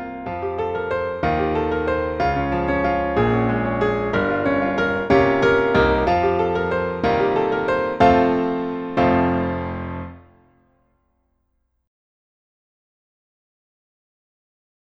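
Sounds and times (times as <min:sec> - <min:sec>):
accompaniment music: 0:00.2 - 0:10.2.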